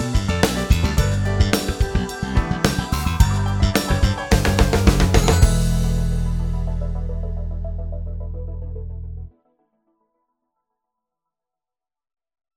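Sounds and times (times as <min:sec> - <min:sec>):
backbeat: 0:00.0 - 0:07.8.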